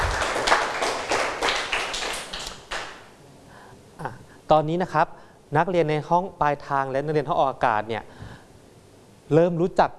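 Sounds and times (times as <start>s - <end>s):
students clapping hands: 0.0s - 3.1s
speech: 4.5s - 8.2s, 9.3s - 9.9s.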